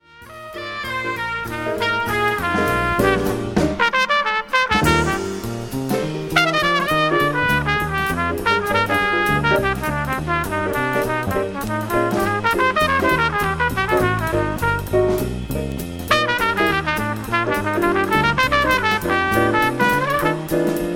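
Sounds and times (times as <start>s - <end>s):
trumpet solo: 0.0s - 15.3s, 16.1s - 20.9s.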